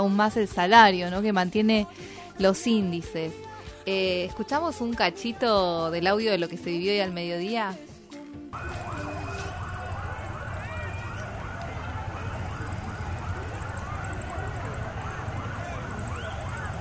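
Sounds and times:
speech: 0.0 - 7.9
police car sirens: 8.6 - 16.8.

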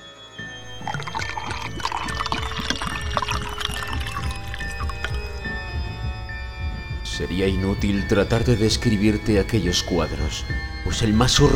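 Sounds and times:
drink being poured into a glass: 0.6 - 6.0
speech: 7.2 - 11.5.

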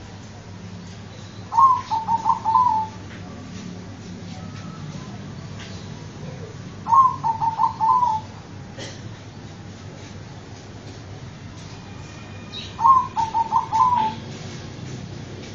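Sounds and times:
dove cooing: 1.5 - 3.0, 6.2 - 8.3, 12.8 - 14.2.

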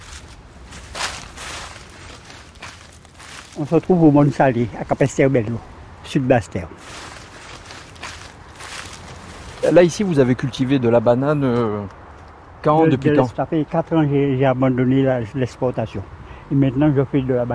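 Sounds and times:
footsteps in dry leaves: 0.0 - 5.0, 6.8 - 10.1
speech: 3.6 - 6.9, 9.7 - 12.0, 12.6 - 17.5.

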